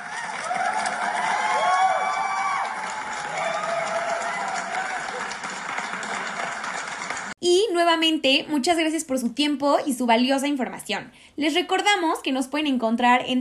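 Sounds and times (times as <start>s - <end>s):
excited voices: 0.0s - 5.4s
applause for the guests: 0.0s - 7.4s
crowd cheering: 0.0s - 7.4s
speech: 7.8s - 13.3s.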